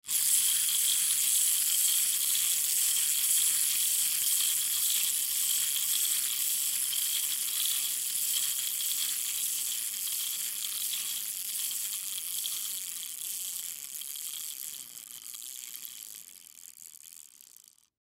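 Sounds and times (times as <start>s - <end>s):
toy spy glasses gears spinning: 0.0s - 18.0s.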